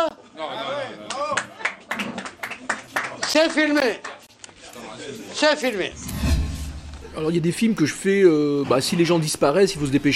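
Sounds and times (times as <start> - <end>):
scattered audience handclaps: 1.6 - 4.2
speech: 3.3 - 4.1, 5.4 - 6.2, 7.2 - 10.1.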